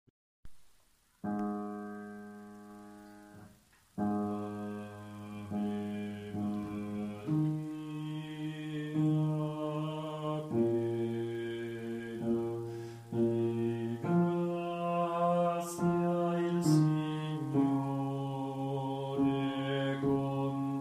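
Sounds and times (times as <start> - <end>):
bass voices singing: 4.1 - 20.7.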